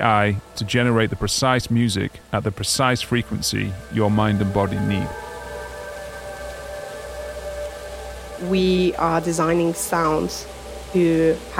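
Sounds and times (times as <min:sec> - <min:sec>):
speech: 0:00.0 - 0:05.3, 0:08.4 - 0:11.5
low rumble and hiss: 0:00.0 - 0:11.5
whale vocalization with long tonal moans: 0:04.0 - 0:10.1.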